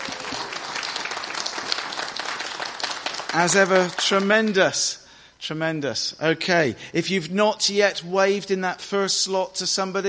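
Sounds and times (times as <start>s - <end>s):
audience applause: 0.0s - 4.6s
speech: 3.3s - 10.0s.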